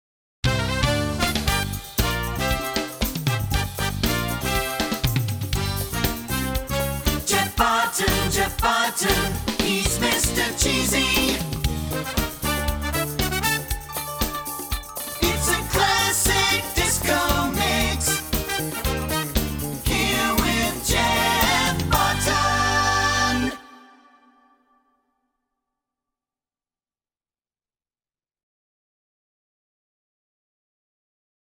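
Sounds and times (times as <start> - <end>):
song: 0.5 - 24.7.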